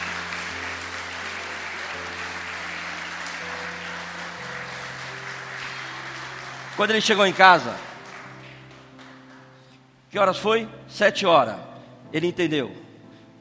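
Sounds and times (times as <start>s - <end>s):
audience applause: 0.0s - 9.7s
organ or keyboard chords: 0.0s - 13.3s
speech: 6.8s - 7.9s, 10.1s - 12.8s.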